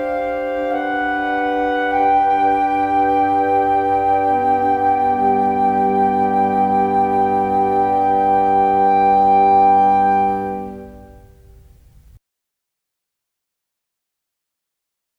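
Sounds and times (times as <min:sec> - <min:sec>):
woodwind quintet playing: 0:00.0 - 0:12.0.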